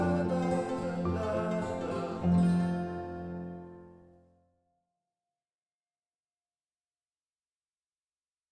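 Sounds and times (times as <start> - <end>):
vocals: 0.0 - 3.6.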